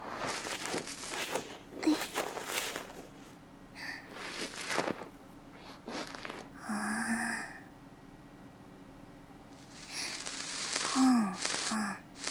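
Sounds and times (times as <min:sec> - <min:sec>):
bamboo ear pick cleaning the left ear: 0:00.0 - 0:03.2, 0:04.0 - 0:06.6, 0:09.6 - 0:12.2.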